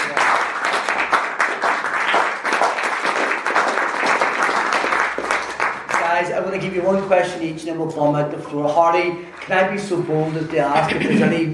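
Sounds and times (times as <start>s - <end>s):
audience applause: 0.0s - 6.1s
speech: 6.3s - 11.5s.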